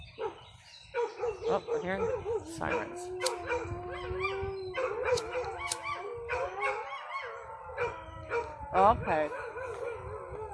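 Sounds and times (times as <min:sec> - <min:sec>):
dogs howling: 0:01.0 - 0:10.5
speech: 0:01.5 - 0:05.8, 0:08.8 - 0:09.4.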